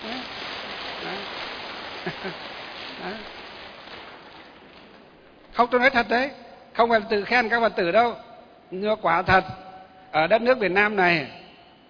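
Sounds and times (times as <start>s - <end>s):
applause: 0.0s - 5.0s
speech: 2.0s - 3.4s, 5.6s - 11.4s.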